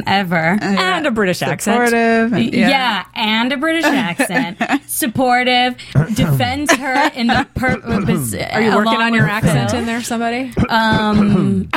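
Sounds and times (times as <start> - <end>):
speech: 0.0 - 11.7
laughter: 3.7 - 5.0, 6.0 - 10.0
throat clearing: 7.6 - 8.4, 10.6 - 11.7.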